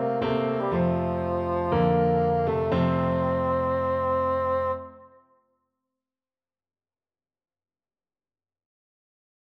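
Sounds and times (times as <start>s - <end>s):
bassoon: 0.0s - 5.4s.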